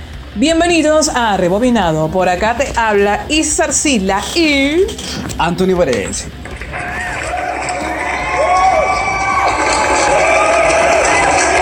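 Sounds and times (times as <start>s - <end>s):
speech: 0.4s - 6.8s
crowd cheering and shouting: 6.5s - 11.6s
excited whoops: 6.7s - 11.6s.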